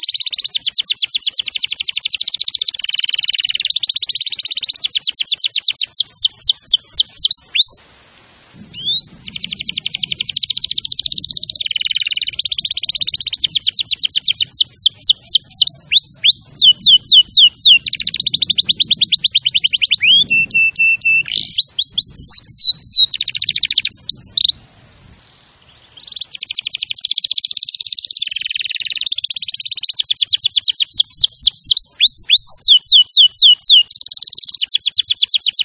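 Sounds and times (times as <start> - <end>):
canary singing: 0.0 - 7.9, 8.7 - 24.6, 25.8 - 35.6
faint low rumble: 7.8 - 26.3.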